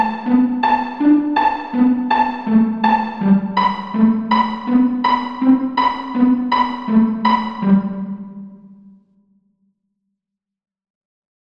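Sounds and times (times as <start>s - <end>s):
polyphonic mandolin exercise: 0.0s - 8.8s.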